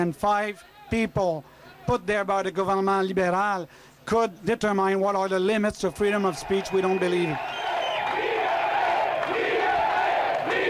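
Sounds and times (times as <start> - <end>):
speech: 0.0 - 7.6
crowd shouting Liberté: 6.0 - 10.6.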